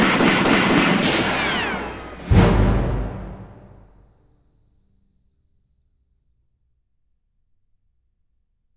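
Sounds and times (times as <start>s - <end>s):
pops orchestra playing: 0.0s - 4.0s.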